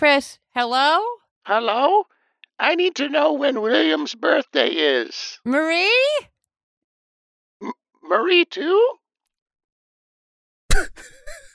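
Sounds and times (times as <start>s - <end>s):
speech: 0.0s - 6.3s, 7.6s - 9.0s, 10.8s - 11.4s
sneeze: 10.7s - 11.0s.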